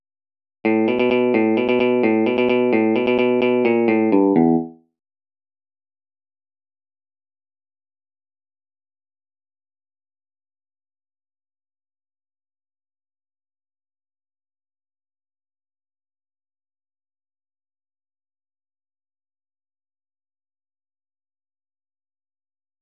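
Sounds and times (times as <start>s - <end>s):
electric guitar: 0.7s - 4.8s.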